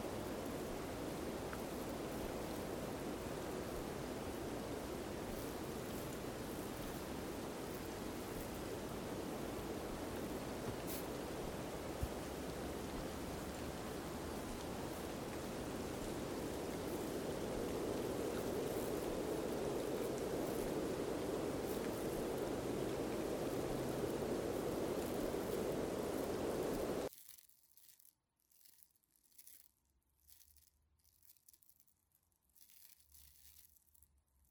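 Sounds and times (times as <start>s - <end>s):
snowfall with wind: 0.0s - 27.1s.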